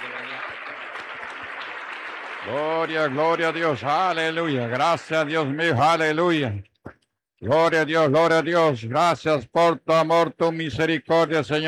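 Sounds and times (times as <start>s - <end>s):
church audience applauding: 0.0s - 5.8s
speech: 2.4s - 6.7s, 7.4s - 11.6s.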